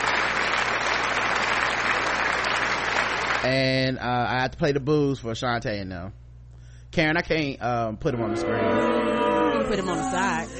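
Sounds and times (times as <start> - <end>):
applause sound effect: 0.0 - 3.6
speech: 3.4 - 6.2, 6.9 - 10.5.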